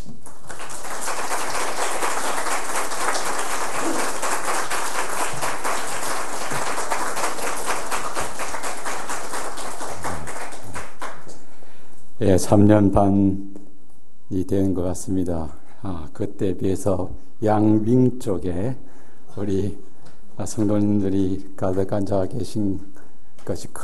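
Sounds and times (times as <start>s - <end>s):
church congregation applauding: 0.2s - 11.5s
speech: 12.3s - 13.5s, 14.3s - 18.8s, 19.4s - 19.8s, 20.4s - 22.9s, 23.5s - 23.8s.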